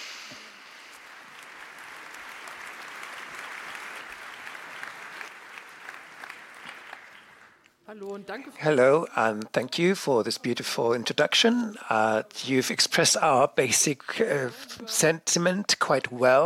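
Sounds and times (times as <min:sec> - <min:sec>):
room of people applauding: 0:00.0 - 0:07.6
speech: 0:07.9 - 0:16.4.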